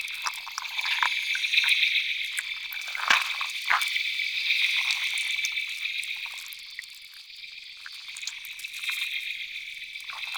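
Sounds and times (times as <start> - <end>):
landscape insects: 0.0 - 10.3.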